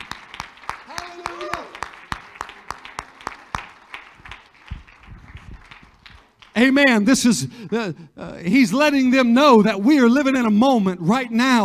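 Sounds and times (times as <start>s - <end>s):
audience clapping hands: 0.0s - 7.9s
speech: 6.6s - 11.6s.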